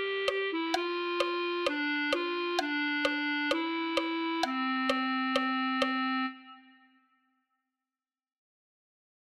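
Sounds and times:
clarinet: 0.0 - 7.0.

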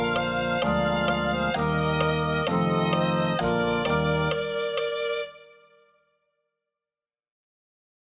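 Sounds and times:
violin: 0.0 - 5.9.

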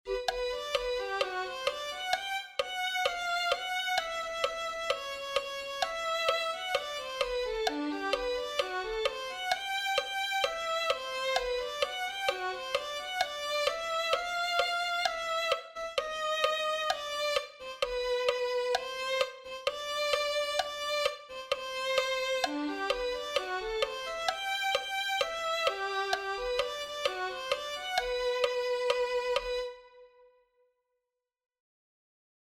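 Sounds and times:
violin: 0.0 - 30.3.

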